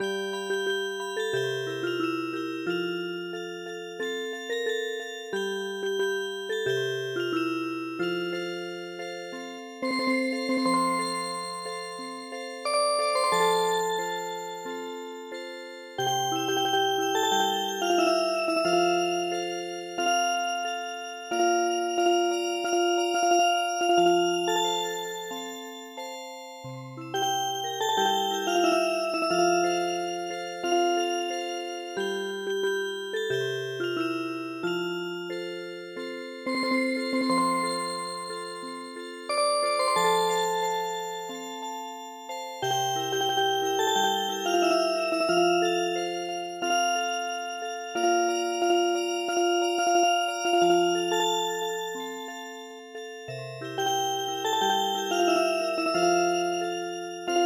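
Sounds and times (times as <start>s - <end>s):
MIDI music box melody: 0.0s - 57.4s.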